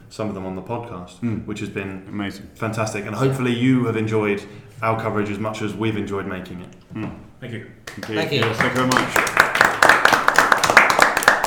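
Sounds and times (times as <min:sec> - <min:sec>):
speech: 0:00.1 - 0:09.5
hand clapping: 0:07.8 - 0:11.4.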